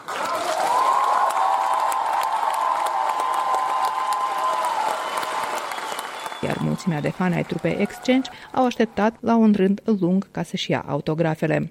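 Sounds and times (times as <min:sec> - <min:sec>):
concert crowd cheering and whooping: 0:00.0 - 0:08.8
concert audience applause: 0:00.0 - 0:09.0
speech: 0:06.4 - 0:11.6.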